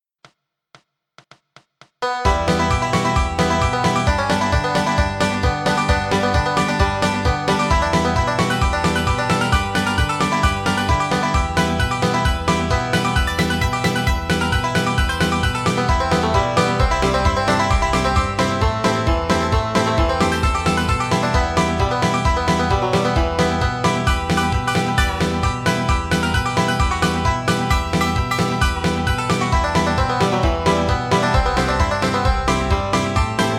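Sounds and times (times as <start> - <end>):
bluegrass banjo: 2.0 - 33.5
bluegrass fiddle: 2.0 - 33.5.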